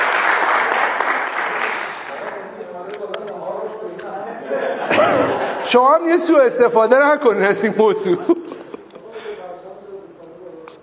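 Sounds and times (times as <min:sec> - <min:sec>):
applause: 0:00.0 - 0:02.4
laughter: 0:04.3 - 0:06.0, 0:07.9 - 0:09.4
speech: 0:05.7 - 0:08.4.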